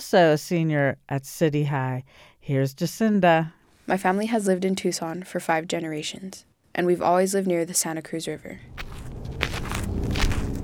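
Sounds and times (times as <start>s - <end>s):
speech: 0.0s - 9.5s
footsteps walking through dry riverbed sand in Tucson: 8.7s - 10.6s.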